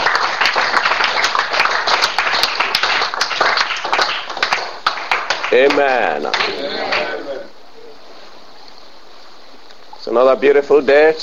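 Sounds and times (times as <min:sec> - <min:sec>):
audience clapping hands: 0:00.0 - 0:07.3
speech: 0:05.6 - 0:06.6, 0:10.1 - 0:11.2.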